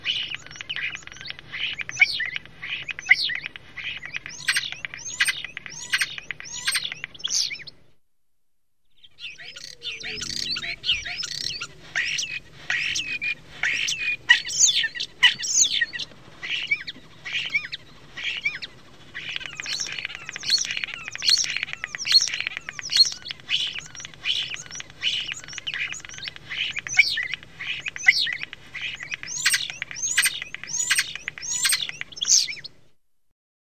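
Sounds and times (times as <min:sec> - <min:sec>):
starling calling: 0:00.0 - 0:07.7, 0:09.0 - 0:32.7.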